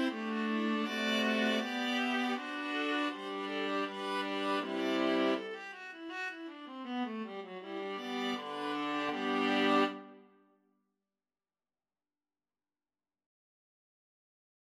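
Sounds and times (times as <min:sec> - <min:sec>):
viola trio playing a baroque gavotte: 0:00.0 - 0:10.0.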